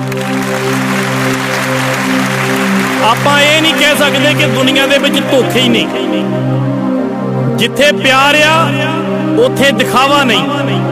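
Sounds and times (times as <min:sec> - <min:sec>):
audience applause at a Punjabi stage talk: 0:00.0 - 0:05.0
sustained musical tones: 0:00.0 - 0:07.7
speech: 0:03.0 - 0:06.8, 0:07.6 - 0:10.9.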